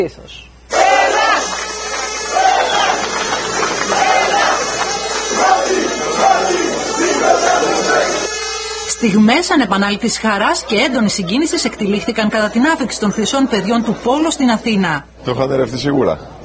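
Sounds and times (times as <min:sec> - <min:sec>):
speech: 0:00.0 - 0:00.5, 0:09.0 - 0:16.4
large crowd cheering and chanting at an airport welcome: 0:00.7 - 0:08.6
laughter: 0:00.8 - 0:08.3, 0:10.2 - 0:14.8.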